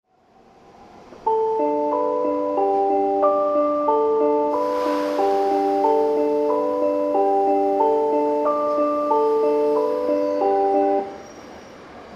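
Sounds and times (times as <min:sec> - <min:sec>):
melody: 0:01.3 - 0:11.2.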